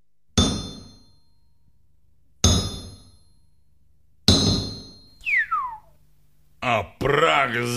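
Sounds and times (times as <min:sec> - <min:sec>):
heavy hammer striking metal: 0:00.4 - 0:01.2, 0:02.4 - 0:03.4, 0:04.2 - 0:05.2
falling whistle-like tone: 0:05.2 - 0:06.0
speech: 0:06.6 - 0:07.7.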